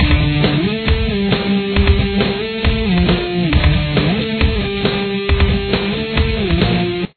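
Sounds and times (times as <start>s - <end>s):
guitar: 0.0s - 7.1s.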